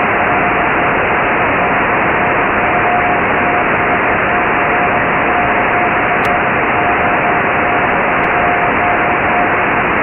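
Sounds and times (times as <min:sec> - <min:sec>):
2400 Hz test tone: 0:00.0 - 0:09.9.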